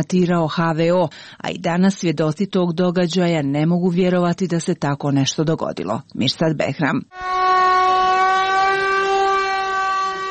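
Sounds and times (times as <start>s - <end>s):
speech: 0.0s - 7.5s
general danger air-raid siren wailing: 7.1s - 10.3s.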